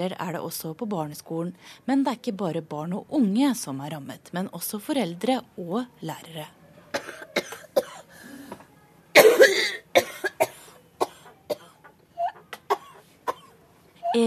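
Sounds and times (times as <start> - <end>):
speech: 0.0 - 7.2
whooping cough coughing fit: 6.9 - 8.1, 9.2 - 14.2.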